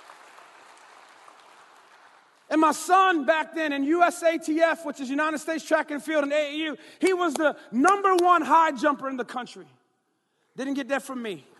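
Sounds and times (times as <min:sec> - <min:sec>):
audience applause: 0:00.0 - 0:02.5
speech: 0:02.5 - 0:09.8, 0:10.6 - 0:11.5.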